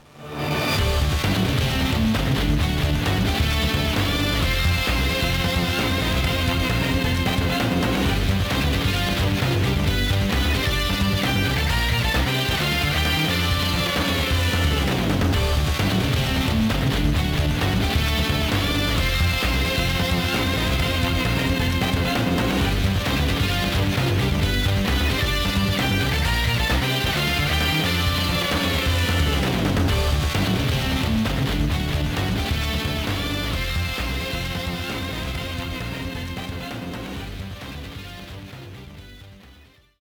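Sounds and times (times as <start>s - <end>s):
background music: 0.0s - 40.0s.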